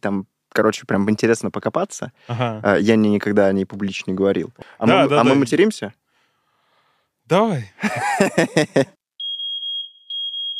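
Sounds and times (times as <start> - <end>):
speech: 0.0 - 6.0, 7.3 - 9.0
laughter: 7.8 - 8.9
fire alarm beeping: 9.2 - 10.5.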